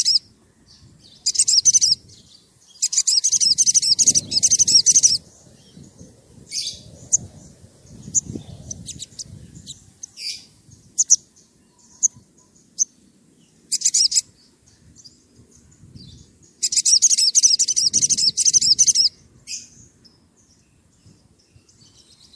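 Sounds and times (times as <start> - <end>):
Oriental magpie-robin song: 0.0 - 22.3.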